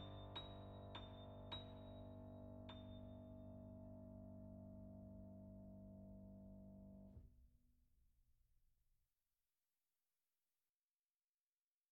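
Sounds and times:
Italian grand piano: 0.0s - 7.1s.

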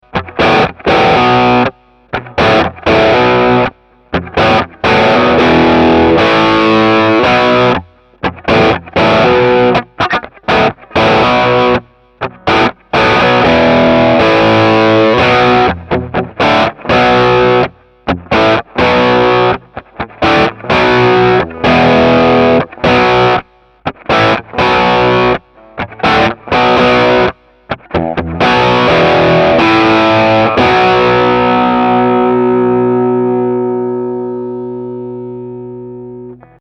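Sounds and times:
Plexi pure guitar amplifier tone: 0.0s - 36.6s.

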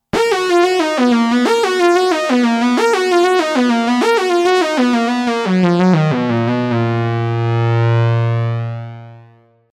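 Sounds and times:
ARP Quadra synth lead: 0.2s - 9.6s.

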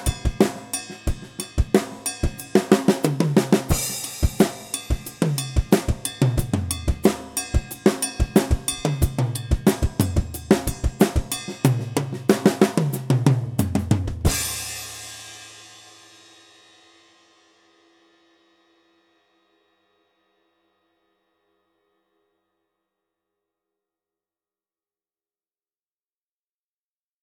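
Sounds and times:
studio drum kit: 0.0s - 16.4s.

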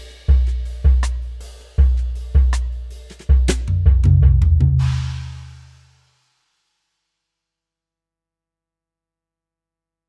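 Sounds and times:
drum brush set: 0.0s - 5.9s.

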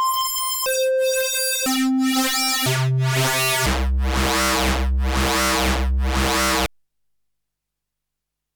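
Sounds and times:
Arturia Polybrute synthesizer waveforms: 0.2s - 6.7s.

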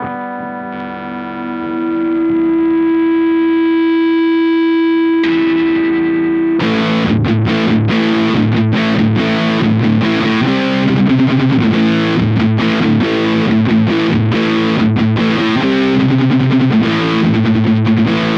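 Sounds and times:
Godin Radiator electric guitar burst high gain both pickups: 0.0s - 18.3s.

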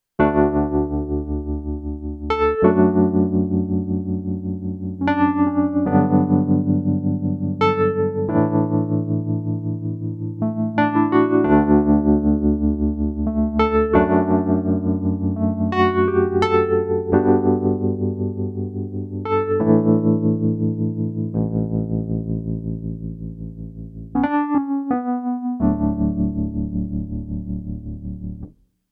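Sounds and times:
Kawai ES 920 sixties-style electric piano: 0.2s - 28.6s.

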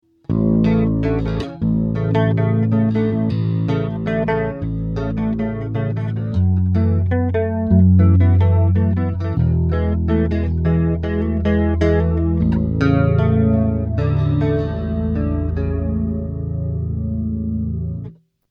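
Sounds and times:
chords: 0.2s - 18.2s.

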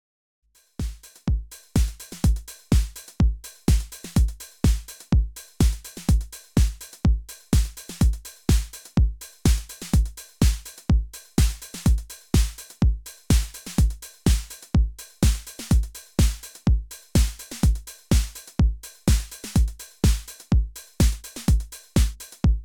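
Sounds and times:
Roland DJ 808 TR-S drum machine: 0.8s - 22.6s.

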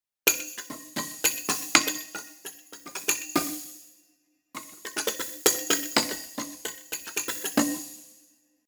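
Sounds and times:
Bandeiro percussion: 0.3s - 8.5s.

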